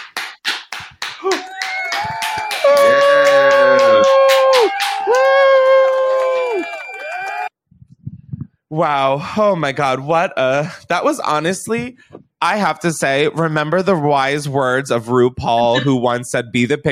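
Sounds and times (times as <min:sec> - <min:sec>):
applause from graduation audience: 0:00.0 - 0:07.5
high-pitched whoops and cheering voices: 0:01.2 - 0:07.5
speech: 0:08.8 - 0:16.9.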